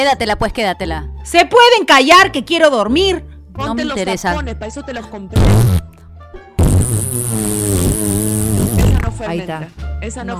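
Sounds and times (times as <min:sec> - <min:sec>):
speech: 0:00.0 - 0:05.8, 0:09.2 - 0:10.3
fart: 0:05.4 - 0:05.9, 0:06.6 - 0:09.1.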